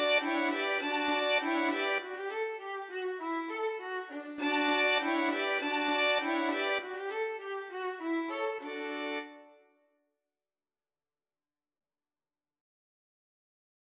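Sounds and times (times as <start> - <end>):
violin quartet playing a musette: 0.0 - 9.4.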